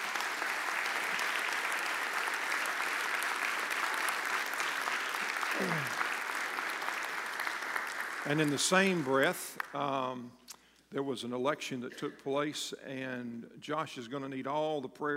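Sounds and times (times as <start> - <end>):
audience applause: 0.0 - 9.6
speech: 8.3 - 15.1.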